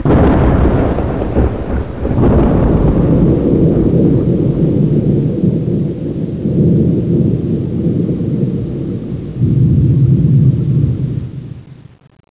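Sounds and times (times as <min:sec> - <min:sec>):
thunder: 0:00.0 - 0:11.9.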